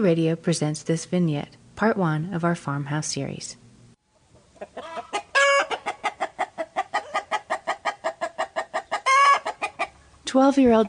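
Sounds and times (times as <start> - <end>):
speech: 0.0 - 3.6, 10.3 - 10.8
chickens clucking on a farm: 4.3 - 10.2.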